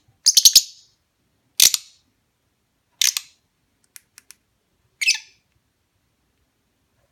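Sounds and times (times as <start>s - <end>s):
lovebird chirping mating call: 0.3s - 0.9s, 5.0s - 5.4s.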